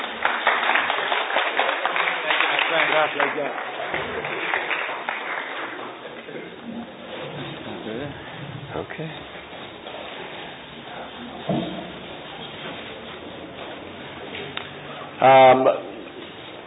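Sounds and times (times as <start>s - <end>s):
audience applause welcoming a speaker: 0.0s - 6.5s
crowd voices: 0.0s - 16.6s
speech: 3.0s - 4.6s, 8.8s - 9.4s, 15.2s - 15.8s.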